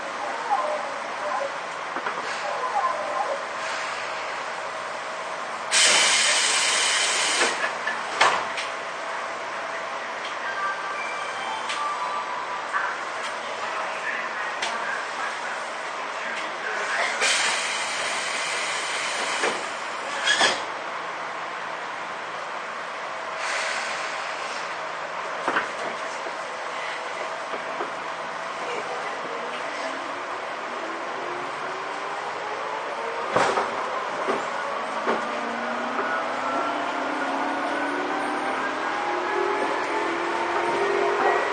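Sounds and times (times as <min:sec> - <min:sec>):
Tobu 10000 series train running between Asakusa and Kita-Senju: 0:00.0 - 0:41.5
rising train motor whine: 0:34.6 - 0:41.5.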